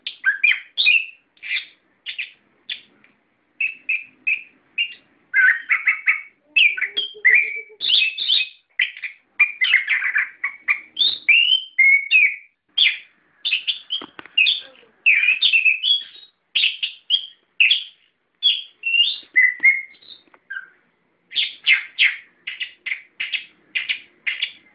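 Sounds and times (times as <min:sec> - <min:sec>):
songbird singing: 0:00.0 - 0:24.7.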